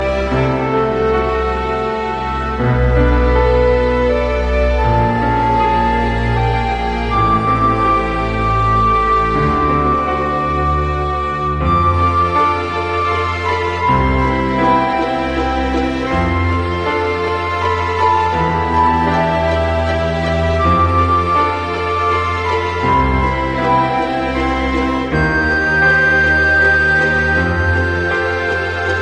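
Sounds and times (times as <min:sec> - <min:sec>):
lullaby music: 0:00.0 - 0:29.0.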